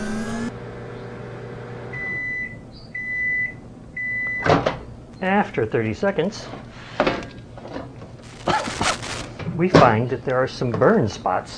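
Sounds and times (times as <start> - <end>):
microwave oven running: 0.0 - 5.0
speech: 5.2 - 7.1, 9.6 - 11.5.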